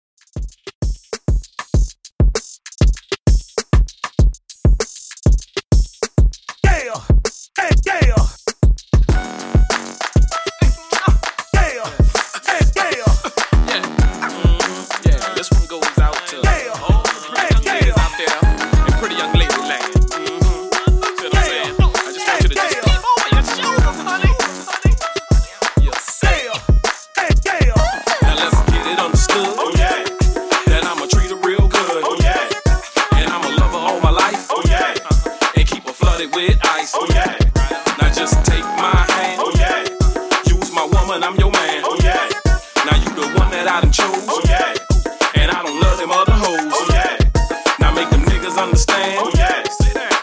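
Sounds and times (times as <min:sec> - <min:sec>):
old school drum beat: 0:00.2 - 0:50.2.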